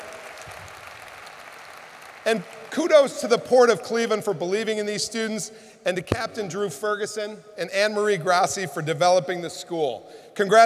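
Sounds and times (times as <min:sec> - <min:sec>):
audience applause: 0:00.0 - 0:03.0
speech: 0:02.3 - 0:10.6.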